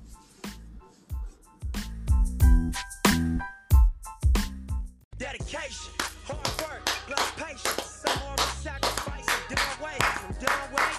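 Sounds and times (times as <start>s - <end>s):
musical beat with deep bass: 0.5s - 10.9s
clapping hits: 6.0s - 10.9s.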